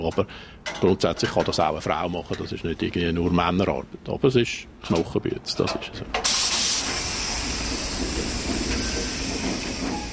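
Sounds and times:
speech: 0.0 - 6.4
broad hissing: 6.2 - 10.1
diesel locomotive pushing freight wagons: 6.2 - 10.1.

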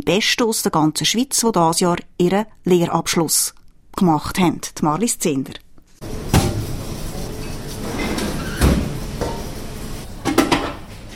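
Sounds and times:
speech: 0.0 - 6.3
refrigerator doors opening and closing: 7.9 - 9.2.

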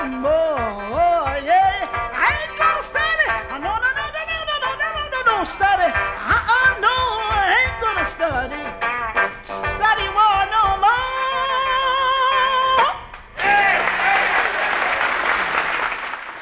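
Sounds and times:
gospel-style singing with instruments: 0.0 - 14.2
audience applause: 13.4 - 16.3.

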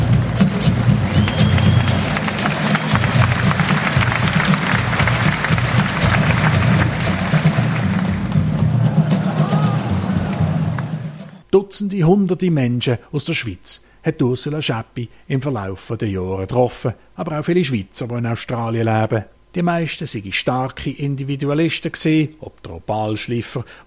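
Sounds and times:
audience applause after drum group performance: 0.1 - 11.4
speech: 11.6 - 23.8.

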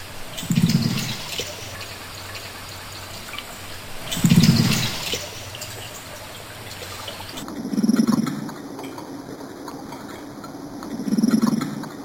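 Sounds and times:
carp making low cooing grunts underwater: 0.0 - 12.0
murky underwater hiss: 0.0 - 12.0.

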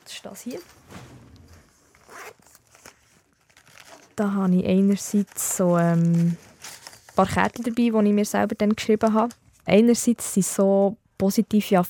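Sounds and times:
speech: 0.2 - 1.2, 4.2 - 6.4, 7.2 - 11.8
small toiletry bag being unzipped: 0.6 - 2.6.

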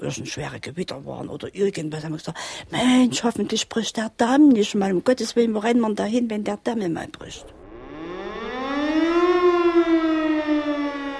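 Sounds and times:
speech: 0.0 - 7.6
civil-defense disaster siren wailing: 7.5 - 11.1.

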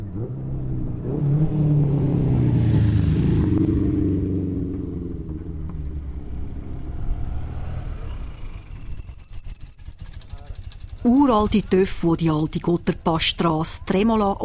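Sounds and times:
vintage Vespa scooters' two-stroke engines buzzing up a mountain pass: 0.0 - 13.0
scooter engine clatter: 4.5 - 13.1
speech: 11.2 - 14.4.

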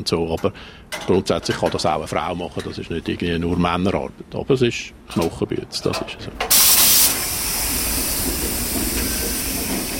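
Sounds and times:
speech: 0.0 - 6.6
diesel locomotive pushing freight wagons up a small hill: 5.9 - 9.9.

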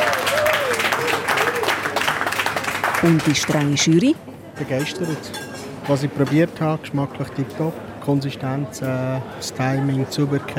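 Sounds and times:
audience applause: 0.0 - 4.0
speech: 3.0 - 10.5.

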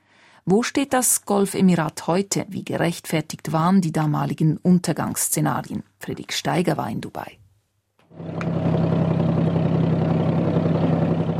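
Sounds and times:
speech: 0.4 - 7.4, 8.1 - 8.8
wooden dhow ferry boat engine idling: 8.2 - 11.3.

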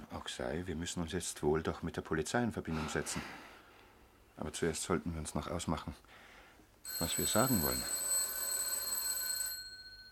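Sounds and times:
speech: 0.3 - 3.6, 4.4 - 6.3, 6.9 - 8.0
doorbell ringing: 6.9 - 10.0.

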